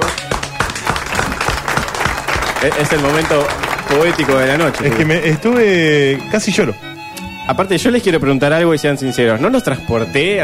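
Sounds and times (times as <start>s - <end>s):
audience applause at a live comedy show: 0.0s - 6.2s
speech: 2.6s - 6.9s, 7.5s - 10.4s.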